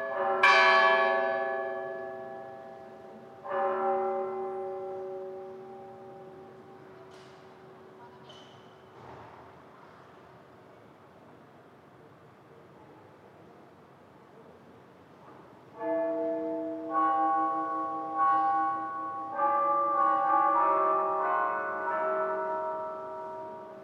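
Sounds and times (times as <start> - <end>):
bell tower bells ringing: 0.0 - 8.0, 15.8 - 23.8.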